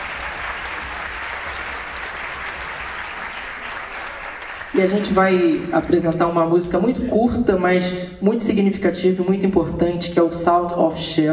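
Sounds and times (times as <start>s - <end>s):
concert audience applause: 0.0s - 5.8s
speech: 4.8s - 11.3s.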